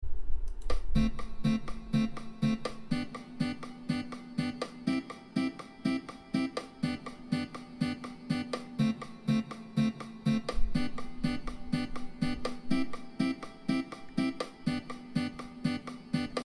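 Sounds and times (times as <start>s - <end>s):
musical chord: 1.0s - 16.4s.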